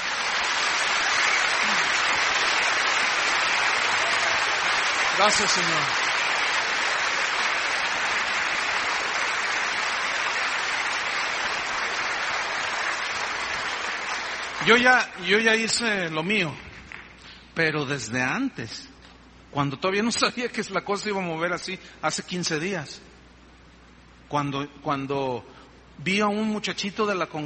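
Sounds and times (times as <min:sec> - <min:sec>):
audience applause: 0:00.0 - 0:15.0
speech: 0:05.2 - 0:06.0, 0:14.6 - 0:16.7, 0:17.6 - 0:18.9, 0:19.5 - 0:23.1, 0:24.3 - 0:27.4.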